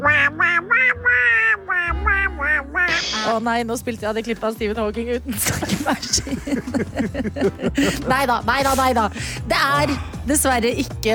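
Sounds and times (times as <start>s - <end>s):
cartoon duck voice: 0.0s - 3.3s
low hum: 0.0s - 3.7s
speech: 0.1s - 0.6s, 2.9s - 11.1s
laughter: 5.5s - 8.9s.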